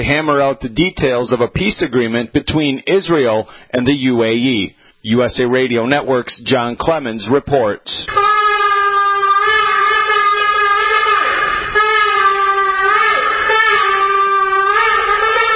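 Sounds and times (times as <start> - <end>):
speech: 0.0 - 8.3
shofar ram's horn being blown: 8.1 - 15.5.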